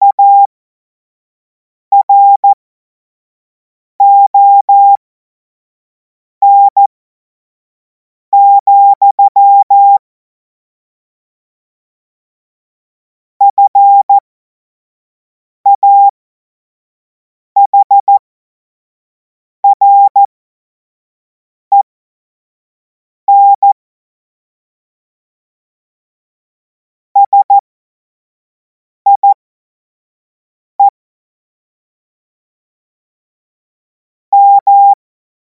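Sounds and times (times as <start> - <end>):
CW Morse code beeps: 0.0 - 0.5, 1.9 - 2.5, 4.0 - 5.0, 6.4 - 6.9, 8.4 - 10.0, 13.5 - 14.2, 15.7 - 16.1, 17.6 - 18.2, 19.6 - 20.3, 23.3 - 23.8, 27.2 - 27.6, 29.1 - 29.4, 34.3 - 35.0.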